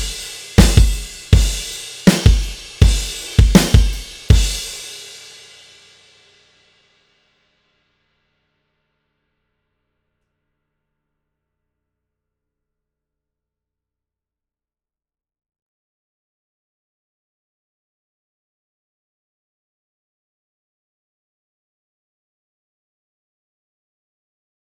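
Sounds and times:
drums: 0.0s - 7.0s.

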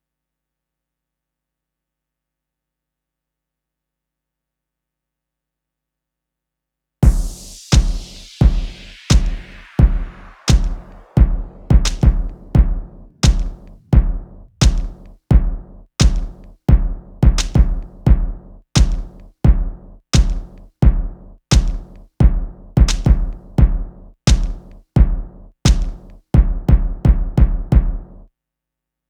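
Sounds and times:
percussion: 7.0s - 28.1s.

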